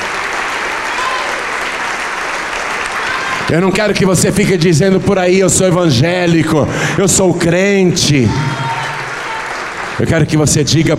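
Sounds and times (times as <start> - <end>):
audience applause: 0.0 - 4.0, 8.0 - 10.9
speech: 3.5 - 8.6, 10.0 - 10.9.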